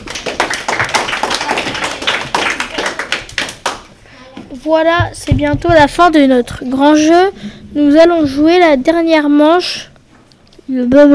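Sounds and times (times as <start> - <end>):
audience applause: 0.0 - 3.9
speech: 4.6 - 9.9, 10.7 - 11.1.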